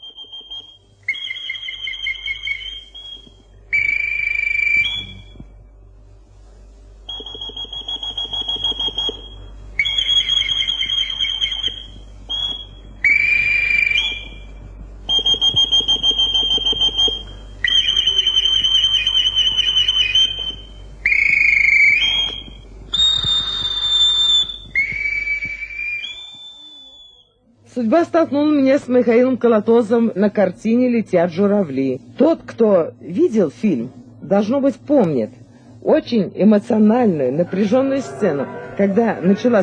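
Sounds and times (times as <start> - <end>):
ship's boatswain's whistle signals played by an old boatswain: 0.0 - 5.3, 7.2 - 14.5, 15.1 - 27.3
low hum: 0.0 - 39.6
speech: 27.8 - 39.6.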